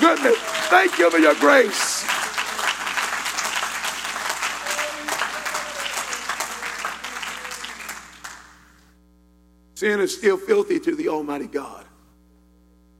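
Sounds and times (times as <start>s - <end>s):
audience clapping: 0.0s - 8.9s
speech: 0.1s - 2.2s, 9.8s - 11.9s.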